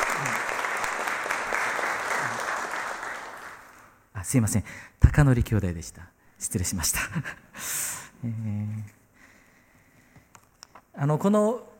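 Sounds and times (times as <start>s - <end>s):
audience applause: 0.0s - 3.9s
speech: 4.3s - 9.0s, 11.0s - 11.7s.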